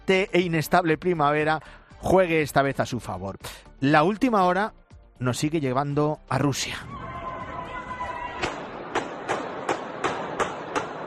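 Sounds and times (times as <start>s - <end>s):
speech: 0.1s - 7.0s
gunshots in a shopping centre: 8.4s - 11.0s.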